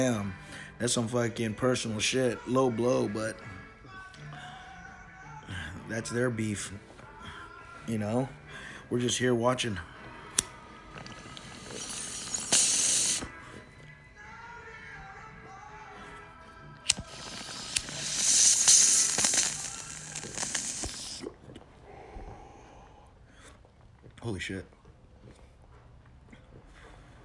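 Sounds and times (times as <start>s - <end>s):
speech: 0.0s - 3.6s, 5.9s - 6.9s, 7.9s - 9.9s, 24.5s - 24.8s
inhaling through a pipe with an overfilled bowl: 11.0s - 13.6s, 16.9s - 23.6s.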